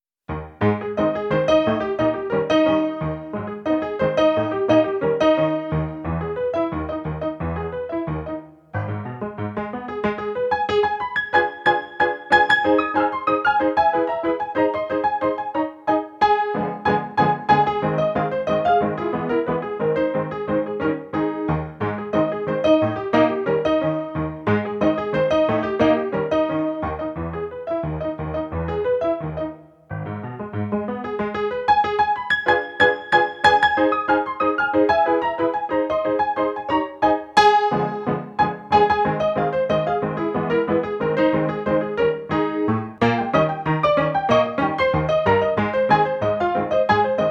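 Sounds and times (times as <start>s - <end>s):
ragtime piece: 0.3s - 47.2s.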